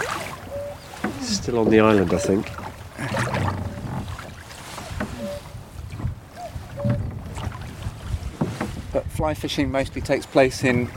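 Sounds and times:
cuckoo calling: 0.0 - 1.1, 2.0 - 2.6, 5.0 - 5.5, 6.3 - 7.1
low watery boat-like rumbling: 0.0 - 10.9
wind buffeting: 0.0 - 10.9
speech: 1.3 - 3.3, 9.2 - 10.9.

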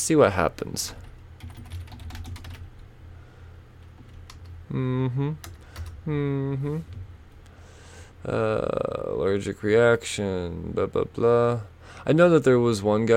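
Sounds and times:
speech: 0.0 - 1.1, 4.7 - 7.1, 8.2 - 13.1
computer keyboard typing a search into DuckDuckGo: 1.1 - 2.8, 3.9 - 4.6, 5.4 - 6.0.

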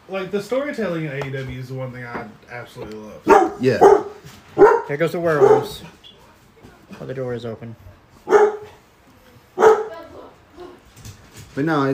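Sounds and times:
speech: 0.1 - 6.0, 6.9 - 7.9, 11.6 - 11.9
dogs barking: 3.2 - 6.0, 8.2 - 8.8, 9.6 - 10.1.

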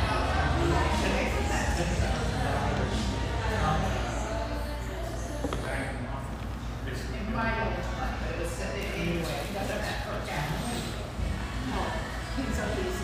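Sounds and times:
murmur of voices in a busy tea room: 0.0 - 13.0.

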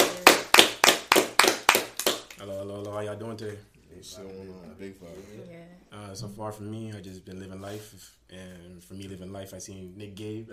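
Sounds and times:
group clapping in unison: 0.0 - 3.0
speech: 2.4 - 10.5.

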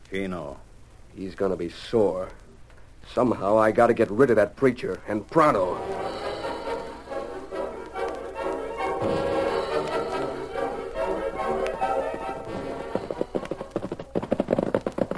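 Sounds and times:
speech: 0.1 - 2.4, 3.0 - 6.2
music: 5.4 - 14.2
horse's hooves clip-clopping at a walk: 11.4 - 15.1.

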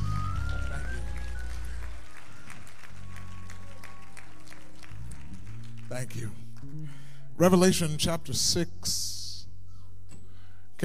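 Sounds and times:
audience clapping hands: 0.0 - 7.0
speech: 5.9 - 9.2.

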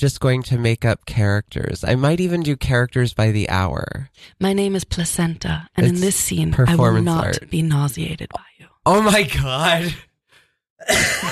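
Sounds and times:
speech: 0.0 - 10.1, 10.8 - 11.3
woman coughing: 10.8 - 11.3.

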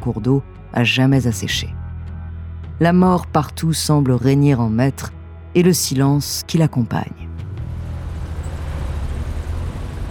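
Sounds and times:
speech: 0.0 - 1.8, 2.8 - 7.3
distant van engine rumbling: 7.6 - 10.0.

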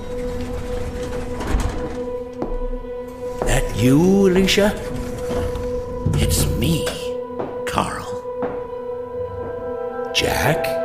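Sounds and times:
elevator door opening: 0.0 - 8.1
speech: 3.8 - 5.0, 6.2 - 7.0, 10.2 - 10.7.

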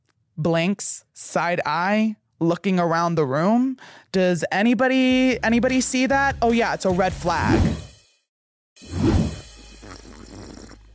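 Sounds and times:
speech: 0.4 - 7.8
person sipping a drink: 8.9 - 10.9.

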